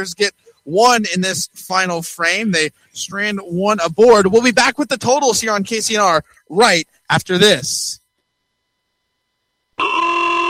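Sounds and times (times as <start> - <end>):
speech: 0.0 - 8.0
car horn blaring: 9.8 - 10.4.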